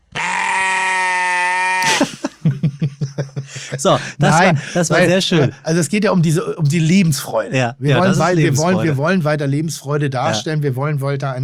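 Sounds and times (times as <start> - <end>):
sheep bleat used as censor bleep: 0.0 - 1.9
laughter: 1.8 - 5.6, 7.6 - 9.0
speech: 3.8 - 11.4.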